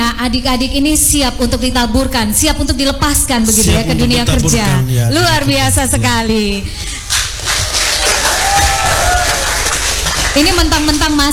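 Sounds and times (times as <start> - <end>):
speech: 0.2 - 6.9, 10.4 - 11.3
audience clapping: 7.0 - 11.3
crowd shouts and whoops: 8.0 - 9.8.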